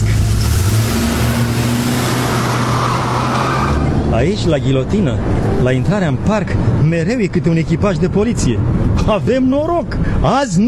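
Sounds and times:
limousine engine revving while driving off: 0.0 - 6.2
speech: 4.2 - 10.6.

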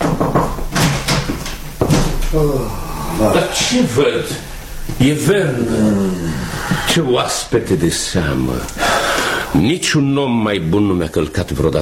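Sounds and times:
knocking on a door: 0.0 - 2.2
speech: 2.3 - 11.8.

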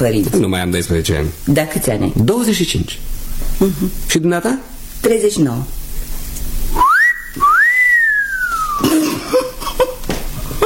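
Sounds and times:
speech: 0.0 - 5.8
admiring whistle by a man: 6.8 - 8.8.

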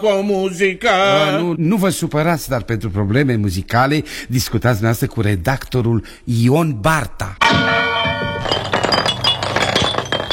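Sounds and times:
speech: 0.0 - 7.8
entrance window glass breaking: 7.4 - 10.3.

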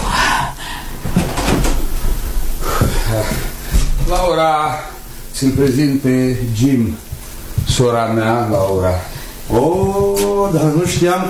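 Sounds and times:
hiss: 0.0 - 11.2
door creaking and rattling open: 1.0 - 2.0
speech: 4.1 - 7.1, 7.8 - 11.2.

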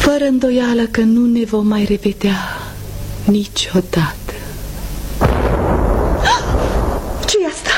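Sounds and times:
speech: 0.2 - 2.5, 3.2 - 4.2
cannon salvo fired in salute: 5.2 - 7.6.

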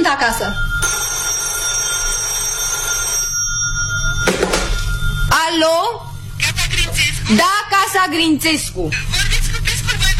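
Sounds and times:
speech: 0.1 - 1.0, 5.5 - 6.1, 7.0 - 9.2
old-fashioned telephone bell ringing: 0.1 - 6.8.

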